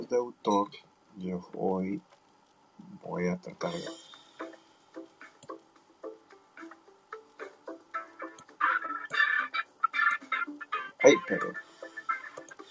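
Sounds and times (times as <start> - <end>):
speech: 0.0 - 2.2, 2.8 - 4.1, 11.0 - 11.6
background music jingle: 3.6 - 12.6.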